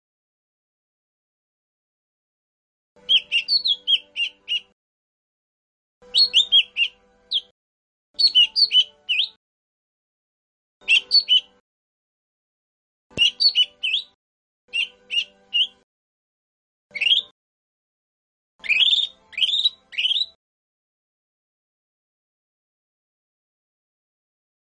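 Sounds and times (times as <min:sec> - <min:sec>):
lesser green leafbird whistled song: 0:03.0 - 0:04.7, 0:06.1 - 0:07.5, 0:08.2 - 0:09.4, 0:10.8 - 0:11.6, 0:13.1 - 0:15.8, 0:16.9 - 0:17.3, 0:18.6 - 0:20.4.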